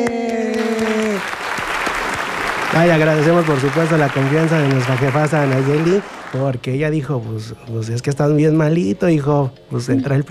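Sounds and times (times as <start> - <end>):
speech: 0.0 - 0.4, 2.8 - 10.2
audience applause: 0.0 - 6.6.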